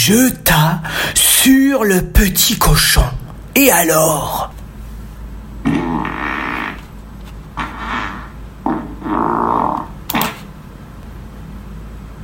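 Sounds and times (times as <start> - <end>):
speech: 0.0 - 4.6
loud fart: 5.6 - 6.9, 7.5 - 10.5.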